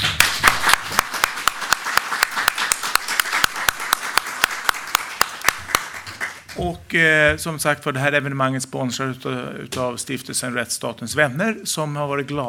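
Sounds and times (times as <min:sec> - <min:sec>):
audience applause: 0:00.0 - 0:06.6
speech: 0:06.6 - 0:12.4.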